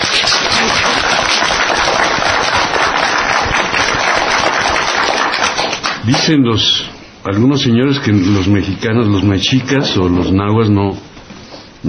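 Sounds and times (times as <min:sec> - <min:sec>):
applause: 0:00.0 - 0:06.3
speech: 0:06.1 - 0:11.1.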